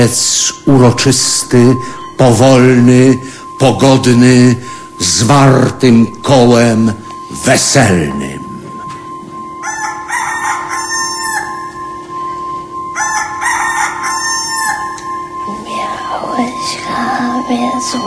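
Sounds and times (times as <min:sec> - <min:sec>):
speech: 0:00.0 - 0:08.3, 0:17.5 - 0:18.0
steady low hum: 0:00.0 - 0:18.0
rooster crowing: 0:09.5 - 0:15.3.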